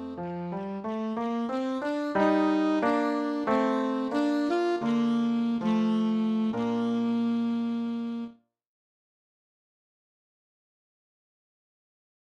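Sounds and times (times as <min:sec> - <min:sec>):
piano accompanying a minuet: 0:00.0 - 0:08.3
alto saxophone playing a minuet: 0:00.0 - 0:08.4.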